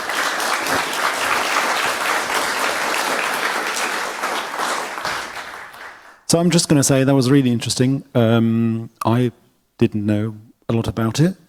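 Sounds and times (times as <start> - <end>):
warm round of applause: 0.0 - 6.3
speech: 6.3 - 11.4.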